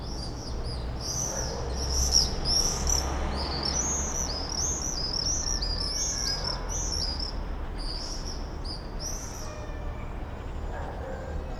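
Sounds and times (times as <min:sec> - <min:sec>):
common swifts screaming in a backyard: 0:00.1 - 0:11.5.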